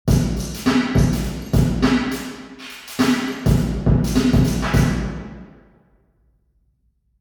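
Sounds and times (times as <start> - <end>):
drum hit reverberating in a church: 0.1 - 5.6.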